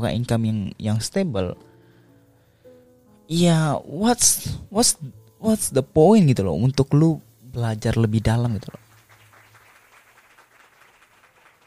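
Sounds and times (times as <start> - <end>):
speech: 0.0 - 1.7, 3.3 - 8.8
hands clapping: 8.6 - 11.6.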